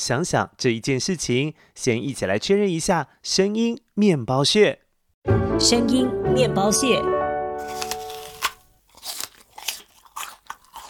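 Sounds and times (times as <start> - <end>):
speech: 0.0 - 7.2
biting a crisp apple: 7.6 - 10.8.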